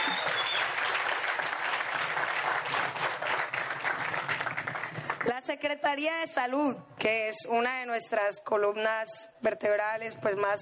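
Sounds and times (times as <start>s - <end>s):
audience applause: 0.0s - 5.3s
speech: 5.5s - 10.5s.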